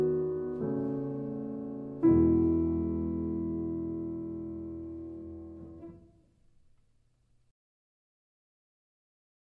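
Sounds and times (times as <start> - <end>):
solo piano: 0.0 - 6.3.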